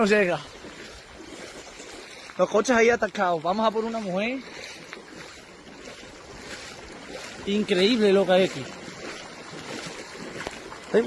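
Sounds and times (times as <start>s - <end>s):
speech: 0.0s - 0.6s, 2.4s - 4.6s, 7.4s - 8.8s
floodwater from a swollen stream rushing through the streets: 0.0s - 11.0s.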